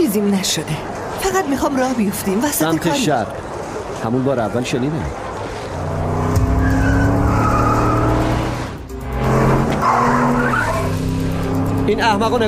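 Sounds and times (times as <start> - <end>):
speech: 0.2 - 6.0, 11.9 - 12.4
red Dodge minivan engine roaring, speeding through an intersection: 5.6 - 12.4
tire squeal: 5.7 - 11.0.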